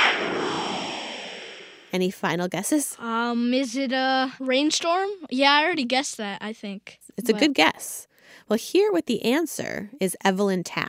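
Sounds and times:
breaking news whoosh sting: 0:00.0 - 0:02.0
speech: 0:01.9 - 0:10.8.

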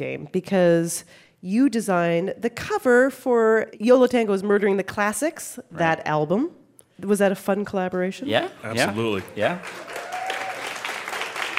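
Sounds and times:
speech: 0:00.0 - 0:10.0
audience clapping for the artwork: 0:08.8 - 0:11.5.

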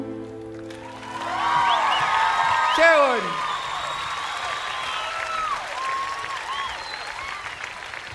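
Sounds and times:
crowd clapping: 0:00.4 - 0:08.1
sweeping whistles: 0:01.4 - 0:07.7.

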